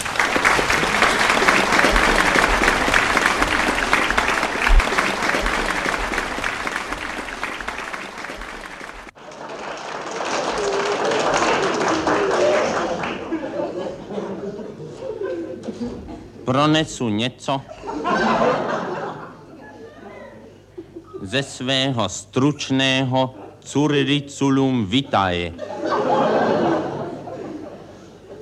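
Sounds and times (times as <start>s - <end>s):
audience applause: 0.0s - 14.0s
crowd laughing: 0.0s - 16.4s, 17.7s - 21.4s, 25.5s - 28.4s
speech: 16.7s - 18.7s, 21.3s - 25.7s.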